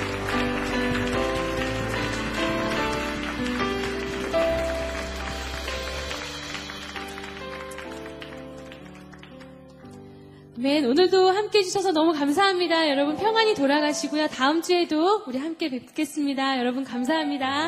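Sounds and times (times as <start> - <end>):
audience applause: 0.0 - 10.0
speech: 10.6 - 17.6.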